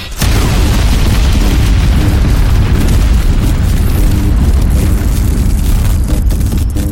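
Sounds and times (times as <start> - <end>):
energy blast of a charged shot fired by a giant machine: 0.0 - 6.9.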